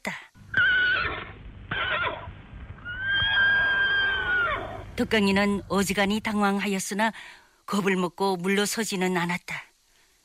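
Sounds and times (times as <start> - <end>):
horse neighing: 0.5 - 4.9
speech: 5.0 - 9.7.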